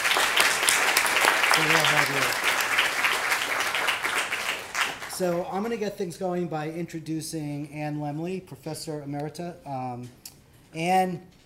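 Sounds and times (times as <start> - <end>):
audience applause: 0.0 - 5.2
speech: 1.6 - 2.6, 5.2 - 11.4.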